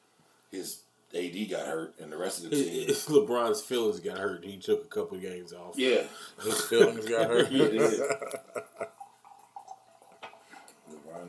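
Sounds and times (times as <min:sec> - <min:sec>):
speech: 0:00.5 - 0:08.8
laughter: 0:06.4 - 0:09.0
liquor being poured: 0:07.7 - 0:11.2.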